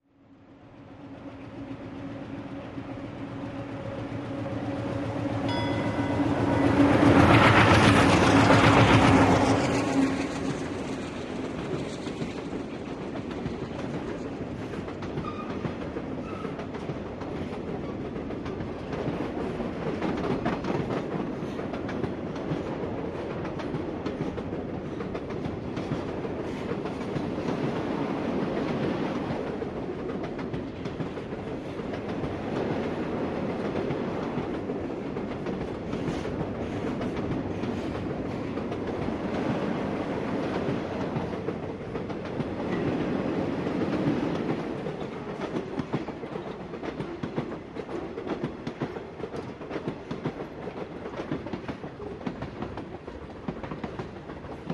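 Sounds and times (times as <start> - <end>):
train coming in quickly and engine passing by: 0.1 - 54.7
train bell ding: 5.4 - 7.6.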